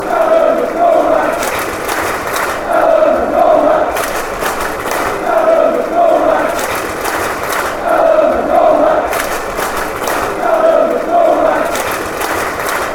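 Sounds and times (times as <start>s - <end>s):
fans chanting: 0.0s - 12.9s.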